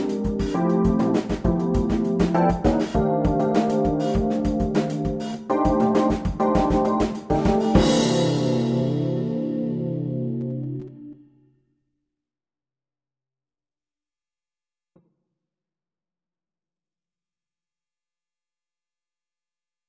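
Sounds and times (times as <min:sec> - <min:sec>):
jazz funk bass etude: 0:00.0 - 0:10.9.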